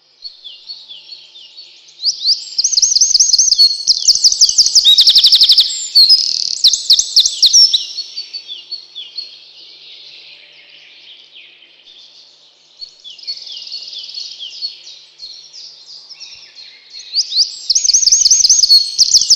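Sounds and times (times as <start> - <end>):
Eurasian wren shrill trilling song: 0.4 - 9.4, 12.8 - 19.3.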